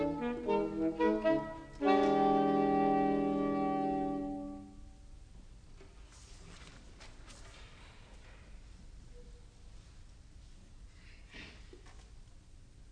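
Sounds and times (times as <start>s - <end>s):
mood music: 0.0s - 5.0s.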